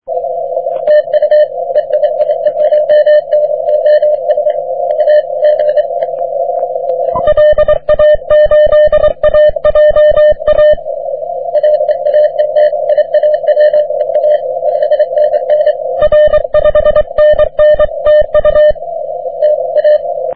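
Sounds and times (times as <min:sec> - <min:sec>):
40m continuous wave radio signal: 0:00.7 - 0:20.3.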